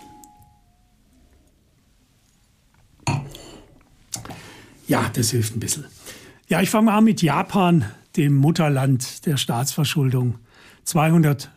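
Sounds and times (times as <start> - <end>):
quiet hum: 0.0 - 6.6
glasses clinking in a toast: 3.0 - 3.8
speech: 4.9 - 11.5.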